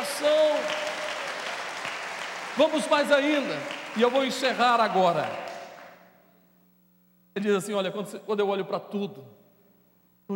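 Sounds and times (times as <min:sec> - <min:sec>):
audience applauding: 0:00.0 - 0:06.1
speech: 0:02.6 - 0:05.4, 0:07.4 - 0:09.4.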